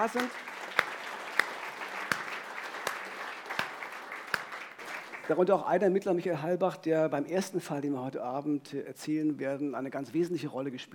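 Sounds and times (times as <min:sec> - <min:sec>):
speech: 0:00.0 - 0:00.5, 0:05.3 - 0:10.9
audience applause: 0:00.0 - 0:05.5.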